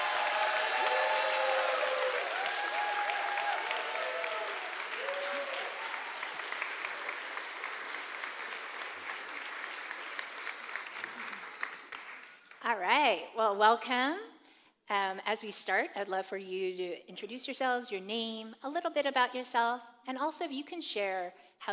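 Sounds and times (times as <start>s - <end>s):
cheers: 0.0s - 11.8s
audience applause welcoming panelists to the stage: 0.0s - 12.6s
speech: 12.7s - 14.3s, 14.9s - 21.7s.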